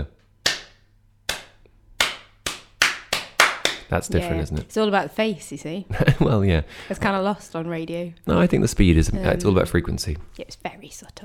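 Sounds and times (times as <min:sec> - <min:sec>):
hand claps: 0:00.4 - 0:04.7
speech: 0:03.9 - 0:11.2.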